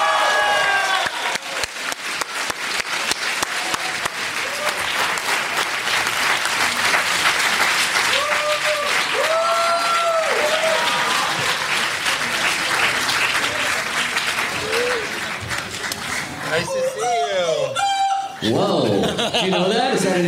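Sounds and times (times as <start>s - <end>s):
whoops and cheers: 0.0s - 1.6s, 3.8s - 4.9s, 8.1s - 11.5s, 14.6s - 15.2s
audience applause: 0.0s - 17.5s
laughter: 18.4s - 20.2s.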